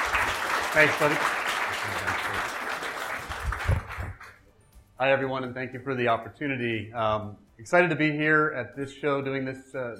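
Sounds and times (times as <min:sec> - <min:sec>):
audience applause for a speaker at an industry show: 0:00.0 - 0:04.3
speech: 0:00.7 - 0:02.4, 0:05.0 - 0:09.9.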